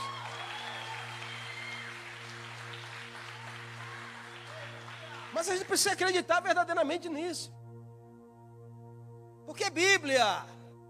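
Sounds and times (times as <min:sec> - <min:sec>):
audience applauding: 0:00.0 - 0:06.0
speech: 0:05.4 - 0:07.6, 0:09.6 - 0:10.6.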